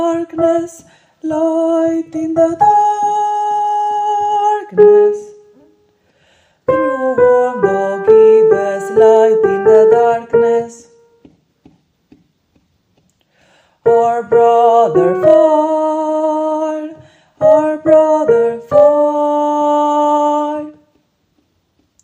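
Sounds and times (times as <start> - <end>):
soprano singing: 0.0 - 5.8, 6.7 - 11.2, 13.8 - 21.0.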